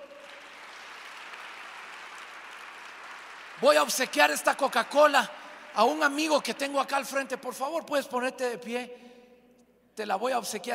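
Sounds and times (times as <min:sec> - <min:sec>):
audience applause: 0:00.0 - 0:05.7
speech: 0:03.6 - 0:09.1, 0:10.0 - 0:10.7.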